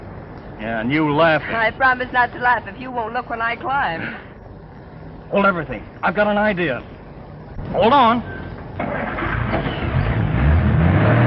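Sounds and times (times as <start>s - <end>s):
car engine driving up onto a sidewalk: 0.0s - 11.2s
speech: 0.6s - 4.3s, 5.3s - 7.0s, 7.6s - 8.9s.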